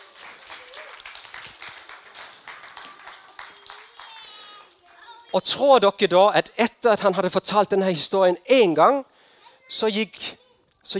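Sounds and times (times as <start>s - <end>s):
audience applause: 0.0s - 5.0s
speech: 5.3s - 9.1s, 9.7s - 10.9s.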